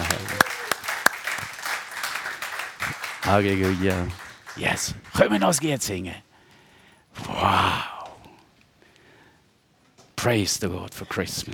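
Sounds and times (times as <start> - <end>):
applause in a church service: 0.0 - 5.7
speech: 3.3 - 6.2, 10.2 - 11.5.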